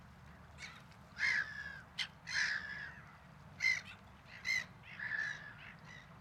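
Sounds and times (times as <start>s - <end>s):
gulls squawking: 0.6s - 3.0s, 3.6s - 5.7s.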